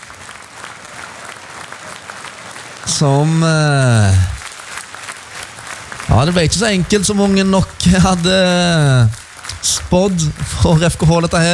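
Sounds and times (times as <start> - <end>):
football crowd of FKH supporters applauding the team: 0.0 - 11.5
speech: 2.9 - 4.3, 6.2 - 11.5.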